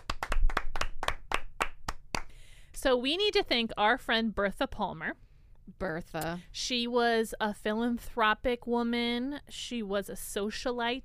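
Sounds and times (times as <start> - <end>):
audience hand claps: 0.0 - 2.4
speech: 2.8 - 5.2, 5.8 - 11.0.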